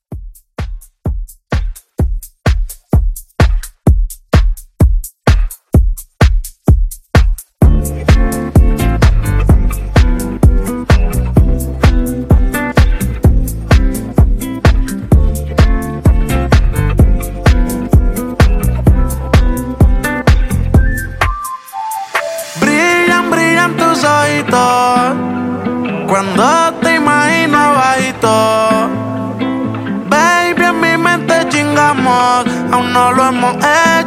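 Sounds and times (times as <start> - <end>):
Latin club music at 128 BPM: 0.0 - 34.0.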